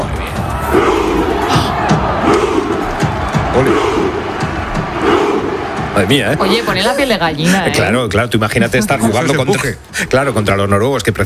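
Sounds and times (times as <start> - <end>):
football fans' Viking rowing chant: 0.1 - 7.7
speech: 6.0 - 11.2.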